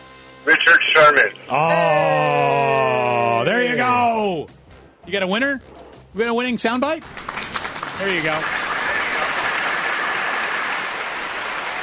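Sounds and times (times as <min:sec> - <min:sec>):
speech: 0:00.4 - 0:02.5, 0:03.8 - 0:07.3, 0:08.0 - 0:08.6
round of applause sound effect: 0:07.0 - 0:11.8.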